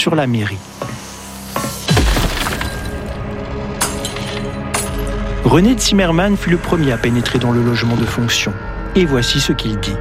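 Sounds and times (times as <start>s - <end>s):
speech: 0.0s - 0.8s, 5.5s - 9.9s
window pane smashed by a rescuer breaking in during an apartment fire: 1.9s - 5.1s.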